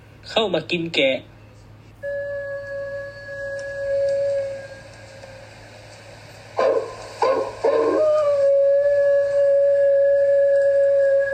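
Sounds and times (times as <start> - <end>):
speech: 0.3 - 1.3
hungry wolf howling: 2.0 - 5.4, 6.6 - 11.3.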